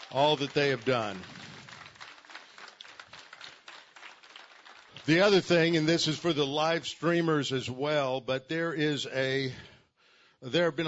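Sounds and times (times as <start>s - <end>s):
audience applause: 0.0s - 5.6s
speech: 0.1s - 1.4s, 5.1s - 9.7s, 10.4s - 10.8s.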